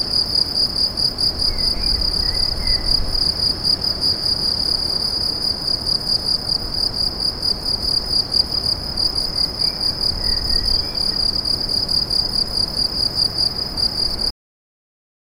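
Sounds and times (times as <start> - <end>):
cricket chorus chirping: 0.0 - 14.3.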